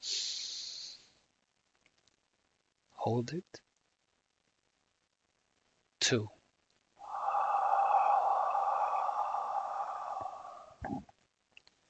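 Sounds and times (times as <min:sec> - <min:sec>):
speech: 0:03.0 - 0:03.6, 0:06.1 - 0:06.4
deep breath in during a guided frankincense aroma meditation: 0:07.0 - 0:10.8.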